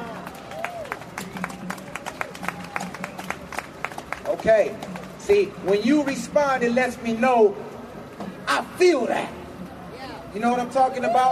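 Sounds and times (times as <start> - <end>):
audience clapping: 0.0 - 5.8
speech: 4.4 - 7.7, 8.8 - 9.4, 10.3 - 11.3.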